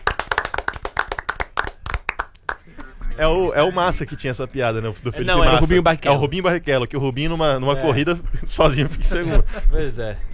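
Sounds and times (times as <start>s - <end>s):
hands clapping: 0.0s - 3.4s
speech: 3.2s - 10.3s.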